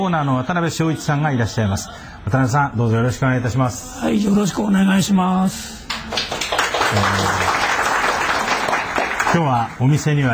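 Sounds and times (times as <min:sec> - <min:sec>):
speech: 0:00.0 - 0:06.2, 0:06.9 - 0:07.6, 0:09.4 - 0:10.3
applause from karaoke bar guests: 0:05.8 - 0:10.3.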